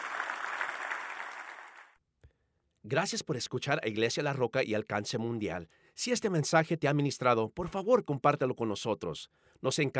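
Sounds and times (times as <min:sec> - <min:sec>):
audience applause: 0:00.0 - 0:01.9
speech: 0:02.8 - 0:09.9.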